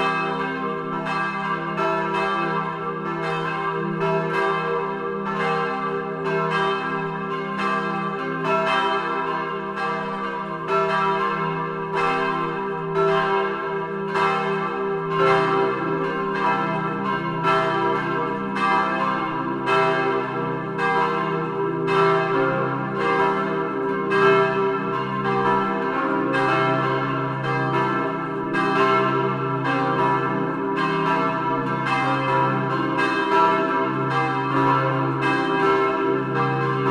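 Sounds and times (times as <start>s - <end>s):
old bells ringing: 0.0s - 36.8s.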